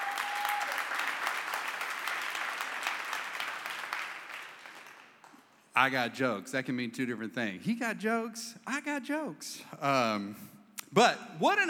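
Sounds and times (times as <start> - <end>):
audience hand clapping: 0.0 - 5.6
speech: 5.8 - 11.6.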